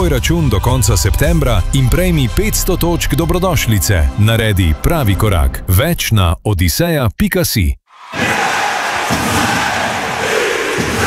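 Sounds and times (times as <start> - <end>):
speech: 0.0 - 8.3
ice hockey arena crowd cheering: 7.9 - 11.0.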